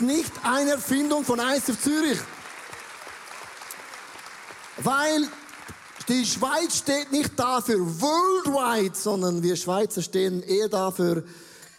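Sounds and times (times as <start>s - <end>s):
speech: 0.0s - 2.4s, 4.8s - 5.4s, 6.1s - 11.7s
audience applause: 0.0s - 7.6s.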